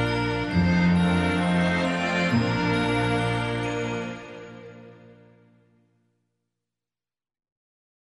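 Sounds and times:
Christmas song: 0:00.0 - 0:06.0.

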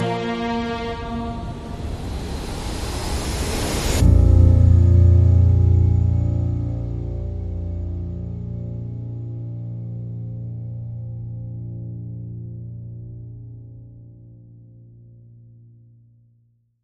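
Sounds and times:
hybrid digital orchestra stinger: 0:00.0 - 0:11.0.

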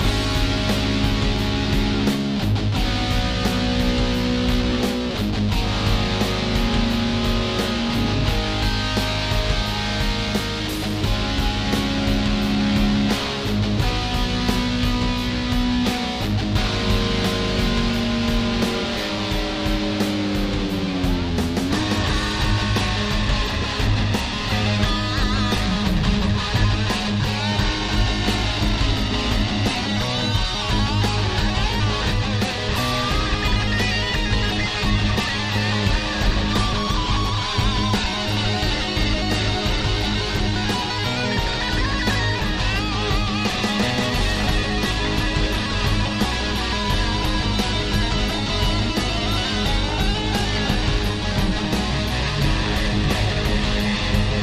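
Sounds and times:
1970s metal music: 0:00.0 - 0:54.4.

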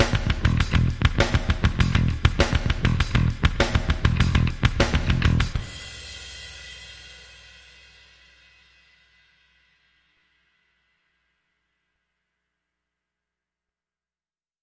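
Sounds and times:
bass: 0:00.0 - 0:10.5
drums: 0:00.0 - 0:10.9.

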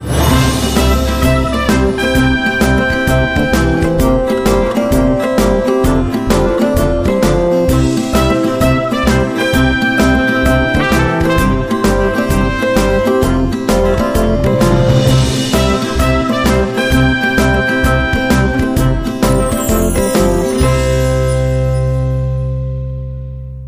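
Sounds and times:
instrumental music: 0:00.0 - 0:23.6.

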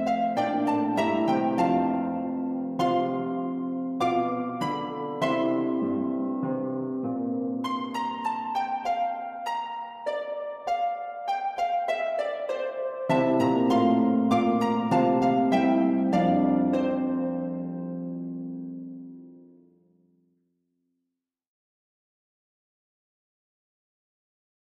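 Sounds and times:
harp version of a Christmas carol: 0:00.0 - 0:19.6.

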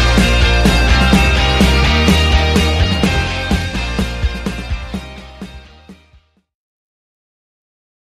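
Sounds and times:
orchestral music: 0:00.0 - 0:05.9.

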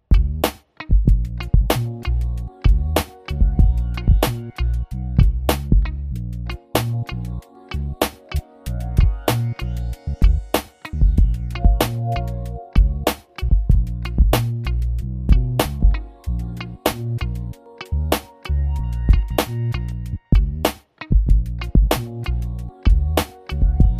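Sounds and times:
lean hip hop beat: 0:00.1 - 0:06.0, 0:06.7 - 0:23.9.

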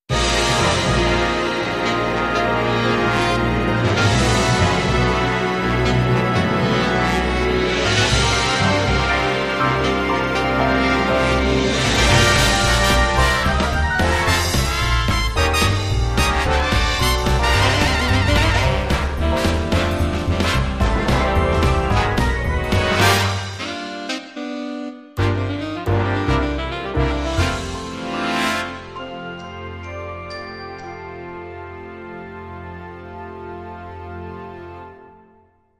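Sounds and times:
funk music: 0:00.1 - 0:31.4.

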